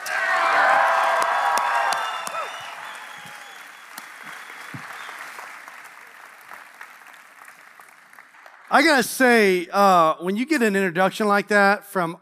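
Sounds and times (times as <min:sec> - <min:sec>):
audience cheering: 0:00.0 - 0:07.8
audience applause welcoming a pastor to the stage: 0:00.0 - 0:09.6
speech: 0:08.8 - 0:12.2.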